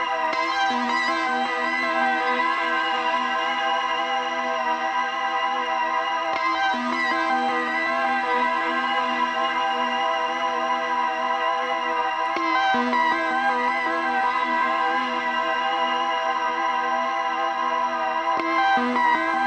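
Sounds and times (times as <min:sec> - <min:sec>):
synth siren loop: 0:00.0 - 0:19.4.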